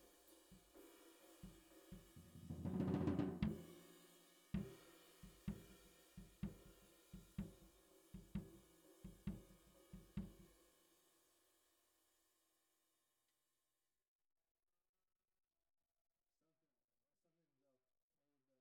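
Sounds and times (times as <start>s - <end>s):
bottom snare drum: 0.6s - 10.5s.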